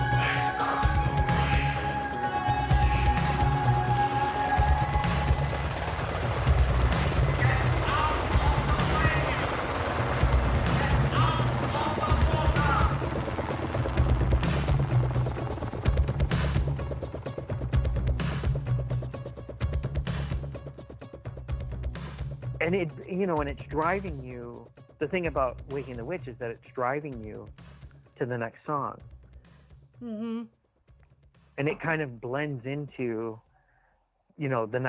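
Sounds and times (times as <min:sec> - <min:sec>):
helicopter sound effect in a song: 0:00.1 - 0:27.4
speech: 0:22.7 - 0:24.4, 0:25.0 - 0:27.6, 0:28.2 - 0:29.1, 0:30.0 - 0:30.6, 0:31.6 - 0:33.4, 0:34.4 - 0:34.8.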